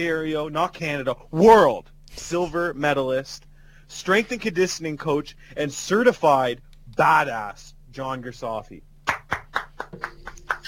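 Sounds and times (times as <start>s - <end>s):
speech: 0.0s - 10.1s
crowd applause: 9.3s - 10.6s.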